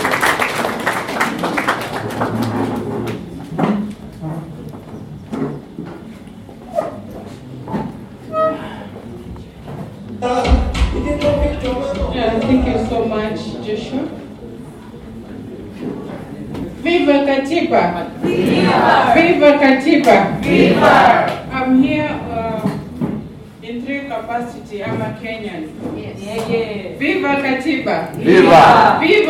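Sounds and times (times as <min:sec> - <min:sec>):
audience applause: 0:00.0 - 0:03.2
crowd voices chattering: 0:00.0 - 0:23.6, 0:24.7 - 0:29.2
speech: 0:26.4 - 0:29.2.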